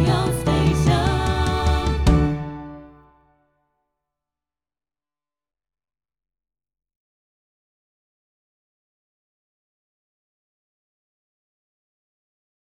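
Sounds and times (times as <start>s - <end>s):
jingle: 0.0s - 3.1s.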